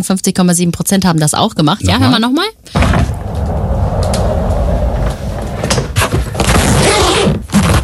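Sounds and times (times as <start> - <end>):
speech: 0.0 - 3.2
rolling suitcase wheeled along: 3.0 - 6.9.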